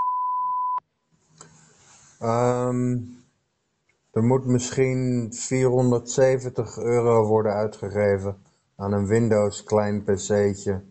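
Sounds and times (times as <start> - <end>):
voicemail tone signalling to leave a message: 0.0 - 0.8
speech: 2.2 - 3.2, 4.2 - 10.8.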